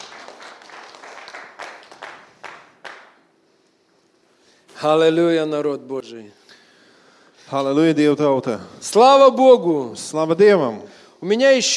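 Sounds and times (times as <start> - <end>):
congregation applause during a church service: 0.0 - 3.2
sharp individual claps: 0.0 - 3.3
speech: 4.8 - 6.4, 7.5 - 11.7.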